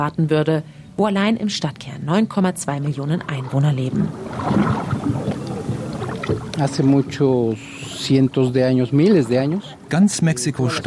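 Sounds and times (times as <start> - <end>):
speech: 0.0 - 5.2, 6.3 - 10.8
paddle strokes dipping and swishing through water: 3.2 - 8.3.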